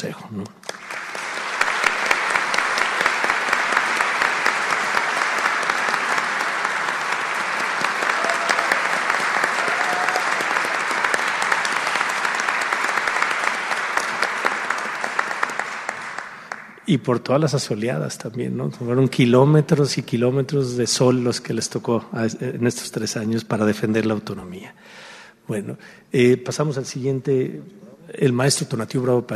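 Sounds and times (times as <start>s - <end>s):
speech: 0.1s - 0.6s, 16.9s - 29.3s
audience applause: 0.6s - 16.8s.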